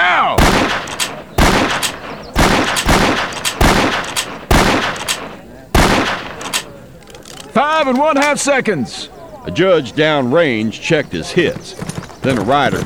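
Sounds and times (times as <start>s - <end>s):
rifle shots in a timed marksmanship contest: 0.4s - 6.8s
speech: 7.6s - 12.8s.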